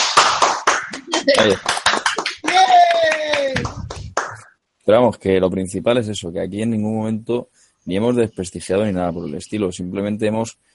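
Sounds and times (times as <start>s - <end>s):
audience applause: 0.0s - 4.4s
speech: 1.3s - 1.8s, 4.9s - 10.7s.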